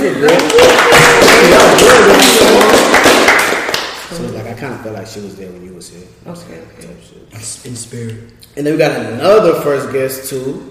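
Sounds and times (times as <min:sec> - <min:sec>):
speech: 0:00.0 - 0:02.7, 0:04.6 - 0:10.7
voices calling out and cheering: 0:00.0 - 0:03.8
audience clapping for a guest: 0:00.0 - 0:04.0.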